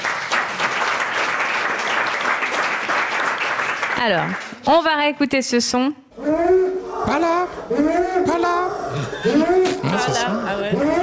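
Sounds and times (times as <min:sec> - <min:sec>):
audience applause during a French word-definition game: 0:00.0 - 0:04.4
speech: 0:04.0 - 0:11.0
laughter: 0:08.9 - 0:10.6.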